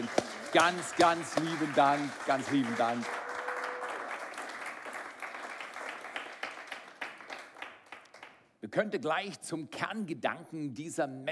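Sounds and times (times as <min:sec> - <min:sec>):
audience applause: 0:00.0 - 0:08.3
speech: 0:00.5 - 0:03.2, 0:08.7 - 0:11.3.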